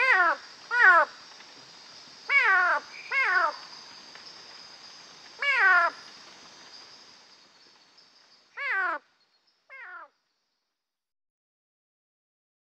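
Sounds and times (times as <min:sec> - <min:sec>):
Leptodactylus knudseni frog calling: 0:00.0 - 0:01.2, 0:02.3 - 0:03.7, 0:05.4 - 0:06.1, 0:08.6 - 0:09.1, 0:09.7 - 0:10.2.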